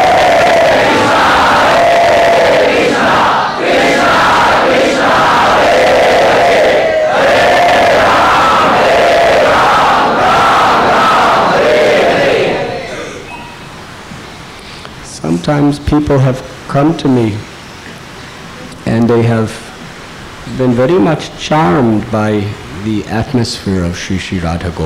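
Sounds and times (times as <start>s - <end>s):
loud congregational chanting by a crowd at Sri Sri Radha Gopinath temple: 0.0s - 13.4s
speech: 15.4s - 17.5s, 19.1s - 19.6s, 20.6s - 24.8s.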